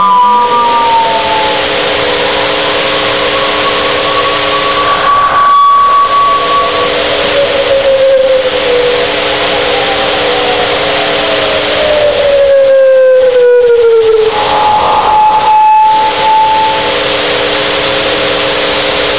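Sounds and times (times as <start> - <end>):
random Doppler tones of traffic: 0.0 - 19.0.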